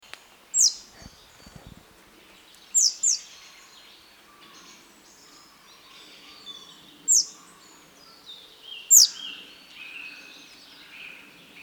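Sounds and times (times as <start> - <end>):
quiet bird twitter: 0.0 - 11.6.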